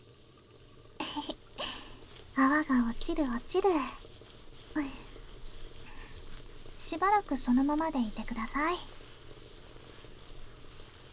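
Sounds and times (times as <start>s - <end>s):
shower water running: 0.0s - 11.1s
speech: 2.4s - 4.0s, 4.8s - 5.0s, 6.9s - 9.0s.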